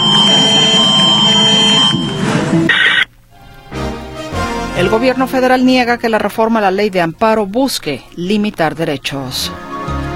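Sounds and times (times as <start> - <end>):
seismic alert tone on mobile phones: 0.0 - 3.1
speech: 4.8 - 9.7.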